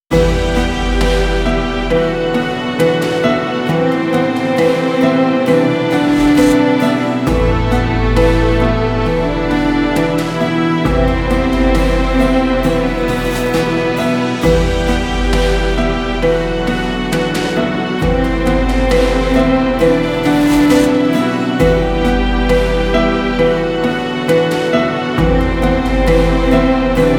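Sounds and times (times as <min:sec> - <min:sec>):
dramatic piano: 0:00.1 - 0:27.1.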